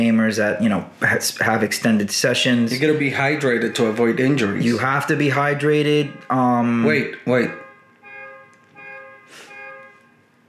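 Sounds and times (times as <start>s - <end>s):
speech: 0.0s - 7.6s
car alarm going off outside: 2.8s - 10.4s.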